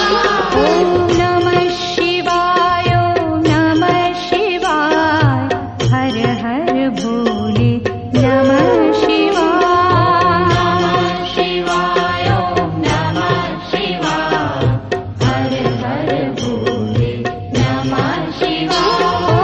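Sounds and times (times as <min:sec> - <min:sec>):
devotional chanting: 0:00.0 - 0:19.4.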